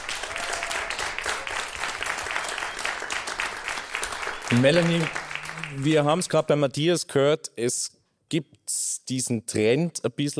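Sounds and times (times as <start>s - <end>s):
audience applause: 0.0s - 6.2s
speech: 4.5s - 10.3s.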